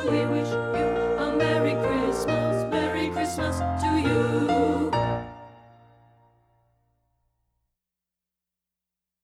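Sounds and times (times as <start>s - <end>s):
alto choir singing: 0.0s - 5.9s.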